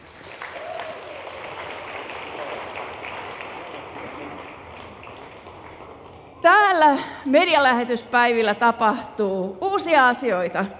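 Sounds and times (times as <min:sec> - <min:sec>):
audience applause for a house band at a Christian media mission event: 0:00.0 - 0:07.0
speech: 0:06.4 - 0:10.7.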